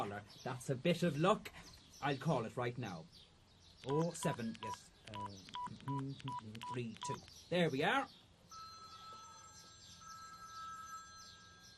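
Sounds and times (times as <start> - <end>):
speech: 0.0 - 8.6
mobile phone ringing in a bag: 3.8 - 7.2, 8.5 - 11.7.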